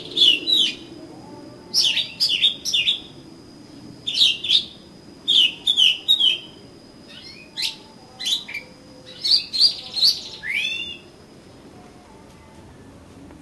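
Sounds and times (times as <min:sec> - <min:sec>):
Oriental magpie-robin whistled song: 0:00.0 - 0:00.9, 0:01.7 - 0:03.1, 0:04.0 - 0:11.1.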